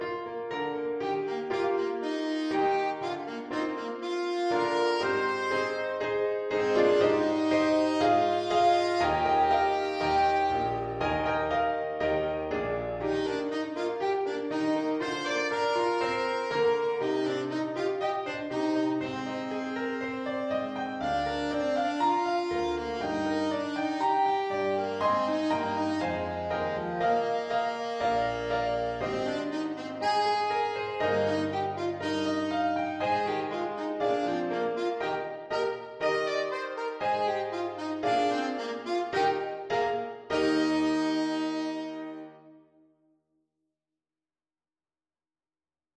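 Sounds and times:
alto saxophone: 0.0 - 42.9.

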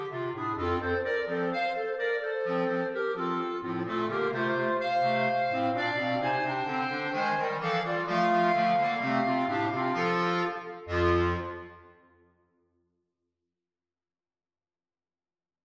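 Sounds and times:
clarinet playing rock music: 0.0 - 11.8.

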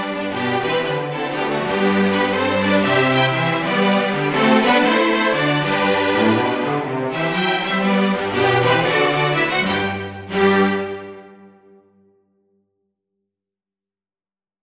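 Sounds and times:
string: 0.0 - 12.0.

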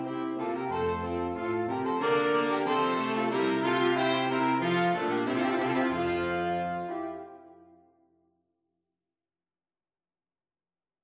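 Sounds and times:
saxophone quartet playing: 0.0 - 7.9.

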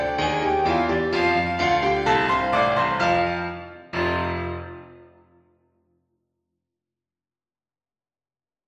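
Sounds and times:
rock clarinet: 0.0 - 5.0
piano: 0.0 - 5.7.

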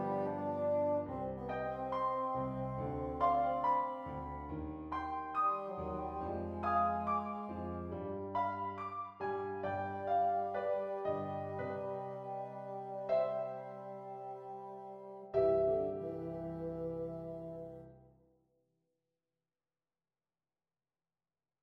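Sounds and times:
bassoon: 0.0 - 8.5, 9.6 - 18.1.

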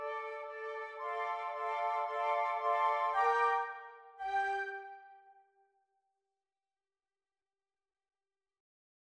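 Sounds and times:
flute quartet playing groovy music: 0.0 - 5.3.

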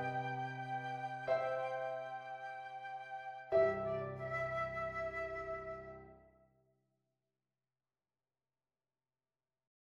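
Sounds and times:
flute: 0.0 - 6.3.

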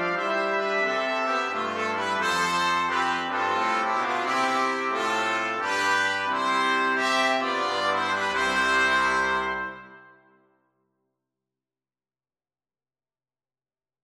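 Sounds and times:
jazz brass quartet playing: 0.0 - 10.2.

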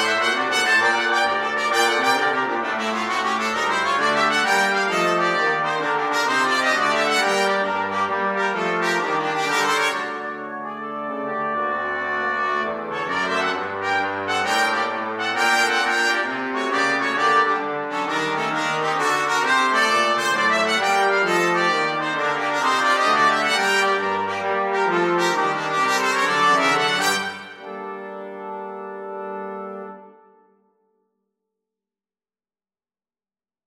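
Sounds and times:
jazz brass quartet playing: 0.0 - 30.4.

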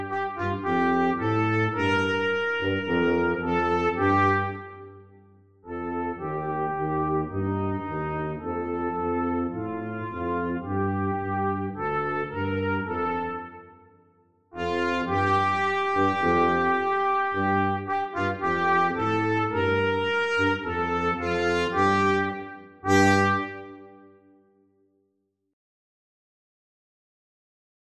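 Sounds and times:
trumpet playing a duet with tuba: 0.0 - 14.0, 14.6 - 24.4
tuba playing a duet with trumpet: 0.0 - 24.4.

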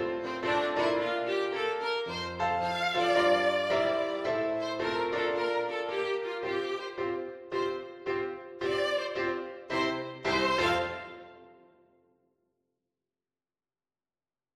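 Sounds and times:
violin: 0.0 - 11.6.

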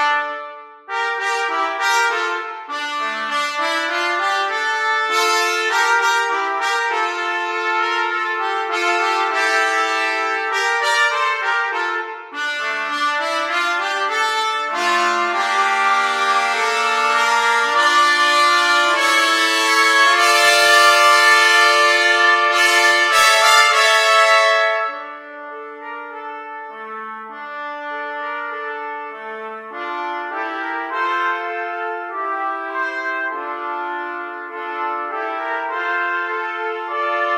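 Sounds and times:
trumpet trio: 0.0 - 37.3.

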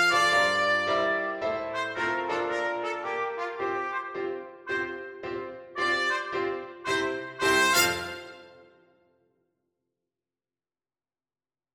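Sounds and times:
trumpet, flugelhorn or cornet: 0.0 - 8.9.

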